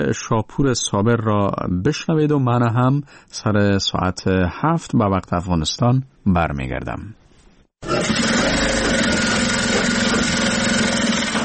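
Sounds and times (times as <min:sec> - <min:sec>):
speech: 0:00.0 - 0:07.2
electric sewing machines running in workshop: 0:07.8 - 0:11.4.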